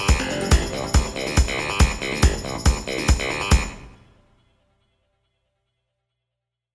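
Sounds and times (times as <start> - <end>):
warp sound: 0.2 - 3.5.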